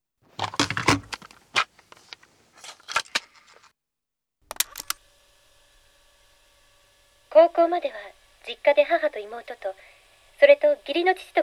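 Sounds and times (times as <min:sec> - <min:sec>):
cassette tape being handled and pushed into a player: 0:00.3 - 0:03.7, 0:04.5 - 0:05.1
speech: 0:07.4 - 0:11.4.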